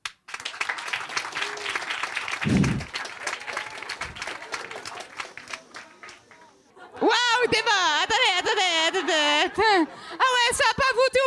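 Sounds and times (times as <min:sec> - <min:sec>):
crowd applause as a vote: 0:00.3 - 0:10.8
scattered cheers: 0:00.7 - 0:10.0
laughter: 0:01.3 - 0:10.9
low thumps: 0:02.4 - 0:02.9
speech: 0:02.4 - 0:02.9.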